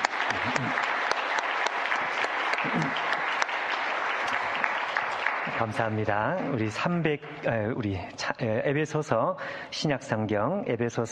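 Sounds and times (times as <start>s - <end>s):
audience clapping: 0.0s - 6.7s
speech: 5.6s - 11.1s.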